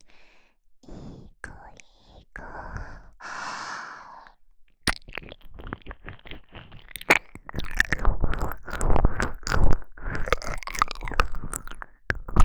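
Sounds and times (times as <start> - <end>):
ear licking sounds for falling asleep: 4.9 - 12.4.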